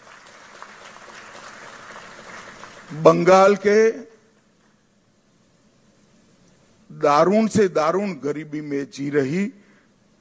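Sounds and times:
audience applause: 0:00.0 - 0:03.0
speech: 0:02.9 - 0:04.1, 0:07.1 - 0:09.6.

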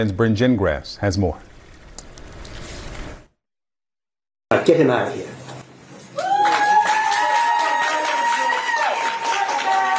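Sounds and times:
speech: 0:00.0 - 0:01.5, 0:04.6 - 0:05.4
courtroom applause: 0:06.2 - 0:09.9.

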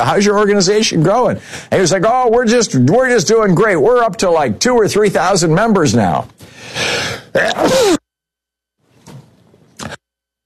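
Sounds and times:
speech: 0:00.0 - 0:08.0
sneeze: 0:07.4 - 0:08.0.

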